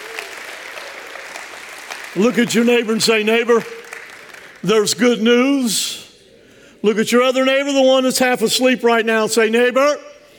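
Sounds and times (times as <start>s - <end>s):
audience hand clapping: 0.0s - 5.1s
speech: 2.1s - 3.8s, 4.6s - 6.1s, 6.8s - 10.1s.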